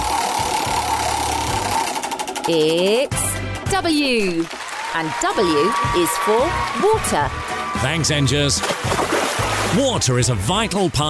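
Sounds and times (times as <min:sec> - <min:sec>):
spinning prize wheel clicking: 0:00.0 - 0:04.5
speech: 0:02.4 - 0:09.1, 0:09.7 - 0:11.0.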